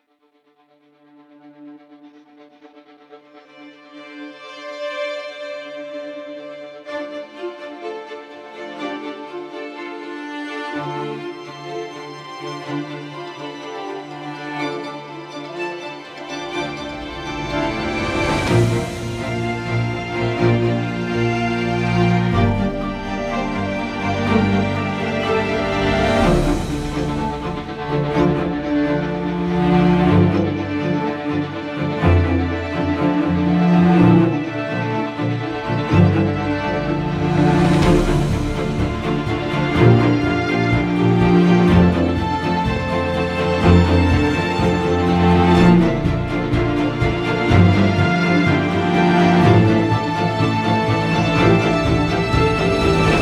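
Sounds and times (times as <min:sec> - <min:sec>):
rhythmic texture: 0:16.2 - 0:53.2.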